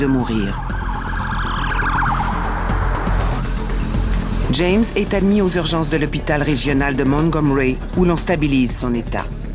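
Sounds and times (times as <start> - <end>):
speech: 0.0 - 0.8, 4.5 - 9.4
ambulance siren: 0.0 - 4.0.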